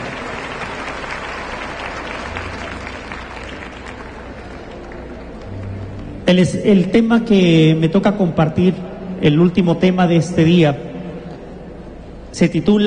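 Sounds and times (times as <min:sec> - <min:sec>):
audience applause: 0:00.0 - 0:06.1
speech: 0:06.3 - 0:10.9, 0:12.4 - 0:12.8.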